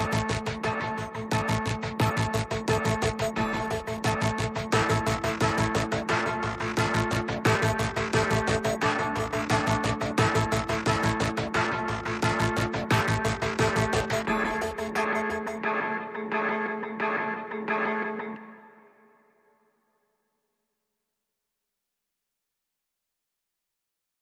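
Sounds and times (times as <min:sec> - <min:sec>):
synth pads: 0:00.0 - 0:17.8.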